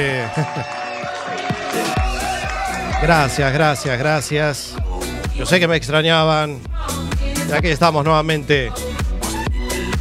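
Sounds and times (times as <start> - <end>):
speech: 0.0 - 1.9, 3.0 - 4.8, 5.4 - 8.9
laughter: 0.0 - 4.2
audience clapping and cheering: 0.0 - 5.0
deep rhythmic thumps: 1.0 - 10.0.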